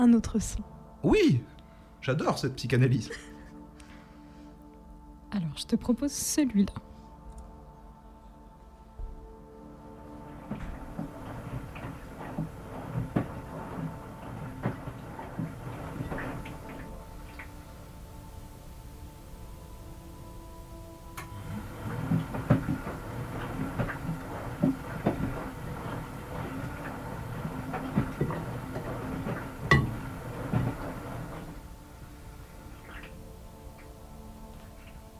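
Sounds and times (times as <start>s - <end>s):
speech: 0.0s - 3.3s, 5.3s - 6.9s
washing machine running: 9.2s - 35.1s.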